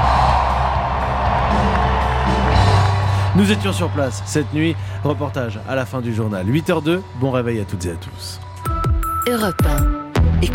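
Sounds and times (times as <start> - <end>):
large arena crowd cheering: 0.0 - 6.7
speech: 3.4 - 8.5, 9.3 - 10.5.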